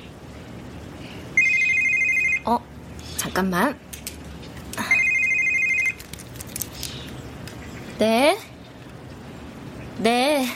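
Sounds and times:
mobile phone ringing: 1.4 - 2.5, 4.9 - 6.0
speech: 2.4 - 3.8, 8.0 - 8.5, 10.0 - 10.5.

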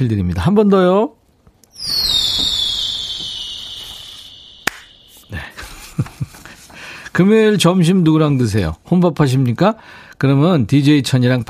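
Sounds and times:
speech: 0.0 - 1.2, 7.2 - 11.4
firework whooshing as it launches: 1.8 - 6.2.

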